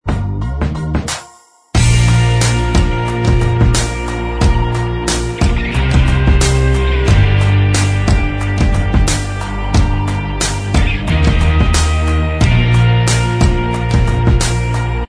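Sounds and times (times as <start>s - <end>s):
instrumental music: 0.0s - 15.0s.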